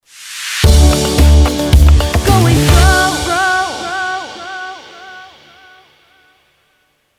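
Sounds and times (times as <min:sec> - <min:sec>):
musical stinger: 0:00.6 - 0:04.4.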